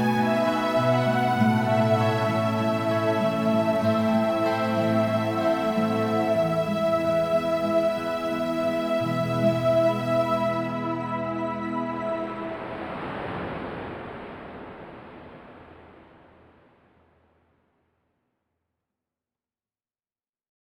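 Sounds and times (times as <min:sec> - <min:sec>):
instrumental music: 0:00.0 - 0:12.6.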